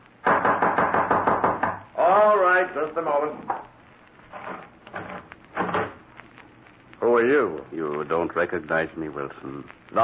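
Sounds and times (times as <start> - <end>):
loud knocking on a door: 0.2 - 1.9
speech: 2.6 - 3.5, 7.2 - 10.0.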